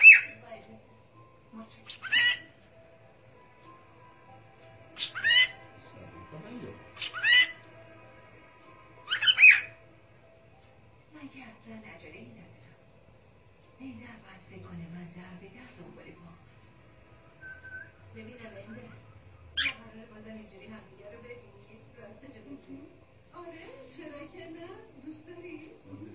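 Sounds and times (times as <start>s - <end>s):
cockatiel: 0.0s - 0.4s, 1.7s - 2.6s, 4.9s - 5.7s, 6.6s - 7.7s, 9.0s - 9.8s, 17.4s - 20.0s.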